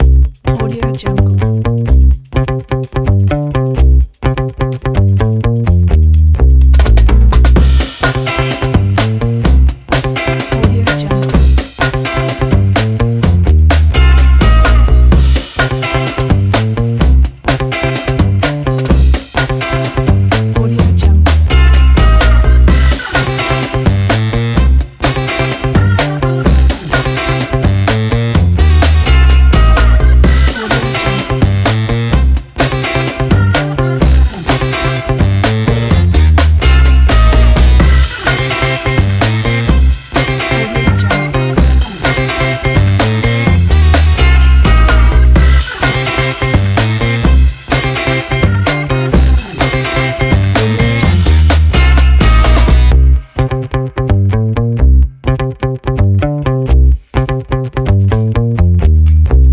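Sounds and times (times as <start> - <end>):
retro funky music: 0.0 - 59.5.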